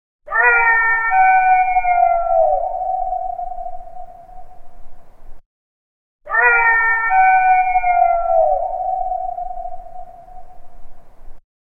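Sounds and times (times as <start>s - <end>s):
howling: 0.3s - 4.6s, 6.3s - 10.8s.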